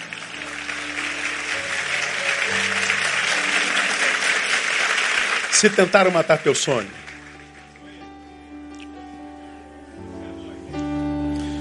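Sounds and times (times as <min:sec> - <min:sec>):
audience applauding loudly: 0:00.0 - 0:08.3
speech: 0:05.6 - 0:07.0.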